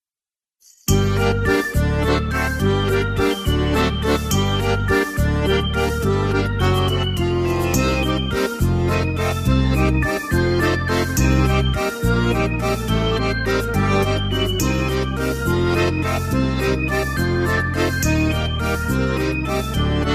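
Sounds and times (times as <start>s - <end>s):
organ: 0.9s - 20.1s.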